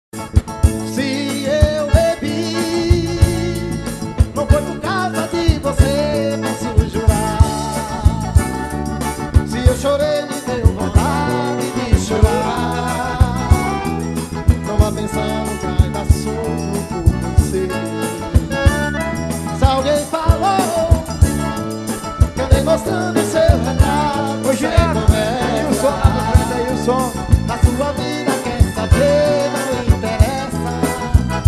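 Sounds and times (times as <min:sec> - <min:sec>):
accordion: 0:00.2 - 0:31.4.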